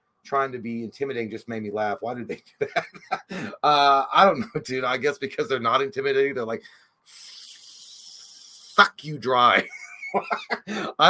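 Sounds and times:
speech: 0:00.2 - 0:07.3, 0:08.8 - 0:11.0
laughter: 0:02.6 - 0:03.5, 0:09.6 - 0:10.9
person imitating a vampire's hiss: 0:03.3 - 0:03.6, 0:07.1 - 0:08.8, 0:10.6 - 0:11.0.

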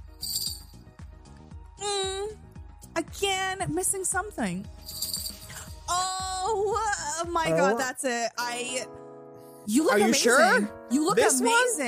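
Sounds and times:
magical bell ringing: 0:00.2 - 0:00.8, 0:04.9 - 0:05.5
speech: 0:03.0 - 0:05.0, 0:05.9 - 0:09.0, 0:09.6 - 0:11.8.

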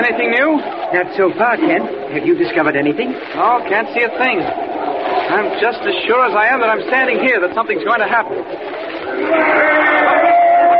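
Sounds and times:
speech: 0:00.0 - 0:10.4
crowd cheering the governor: 0:09.0 - 0:10.7.

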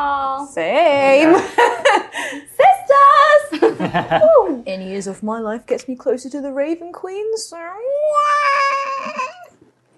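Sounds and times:
speech: 0:00.0 - 0:02.4, 0:03.8 - 0:08.5
laughter: 0:03.5 - 0:04.6
voice imitating a wail: 0:08.1 - 0:09.5.

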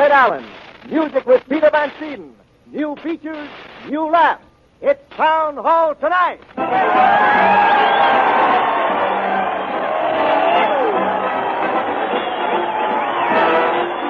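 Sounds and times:
speech: 0:00.0 - 0:08.4
crowd cheering: 0:06.6 - 0:14.0.

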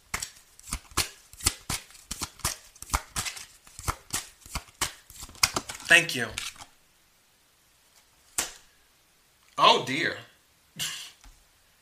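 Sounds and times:
playing cards being shuffled: 0:00.1 - 0:06.7
speech: 0:05.9 - 0:06.4, 0:09.8 - 0:10.9.

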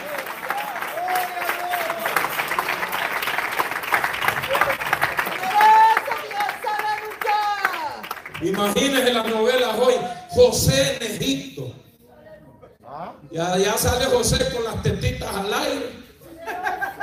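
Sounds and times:
people whooping: 0:00.0 - 0:02.7, 0:04.4 - 0:08.0
crowd clapping: 0:00.0 - 0:10.1
speech: 0:08.4 - 0:11.7, 0:13.4 - 0:15.7
laughter: 0:16.2 - 0:17.0.

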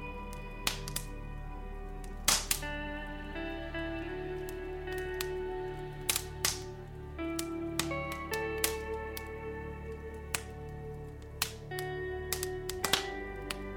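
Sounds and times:
fireplace crackling with pops and snaps: 0:00.0 - 0:13.7
soft slow relaxing music: 0:00.0 - 0:13.7.

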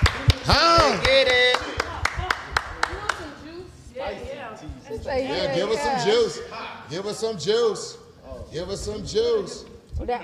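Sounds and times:
hand claps: 0:00.0 - 0:03.3
murmur of voices: 0:00.0 - 0:10.2
speech: 0:05.1 - 0:10.2.

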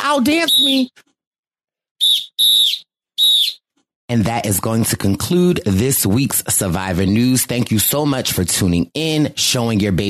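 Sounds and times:
speech: 0:00.1 - 0:01.1, 0:04.1 - 0:10.0
whistle blowing: 0:00.4 - 0:00.9, 0:02.0 - 0:03.6.

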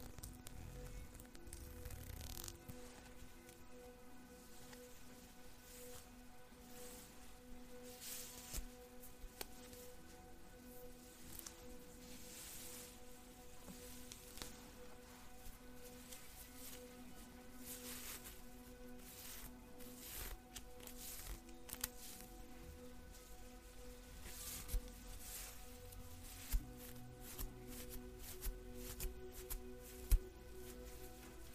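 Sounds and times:
hair brushing swishing strokes: 0:00.0 - 0:31.5
low sustained ambient music tone: 0:00.0 - 0:31.5.

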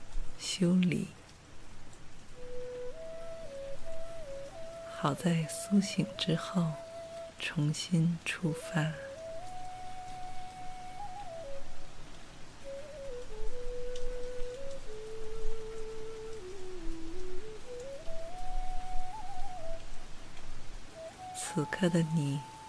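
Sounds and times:
steady dense rain: 0:00.0 - 0:22.6
speech: 0:00.6 - 0:01.2, 0:05.0 - 0:06.8, 0:07.4 - 0:09.0, 0:21.6 - 0:22.5
soft sustained melodic tone: 0:02.3 - 0:22.6.

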